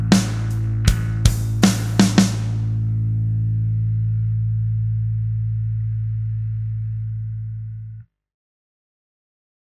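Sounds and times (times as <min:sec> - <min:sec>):
backing track: 0:00.0 - 0:07.7.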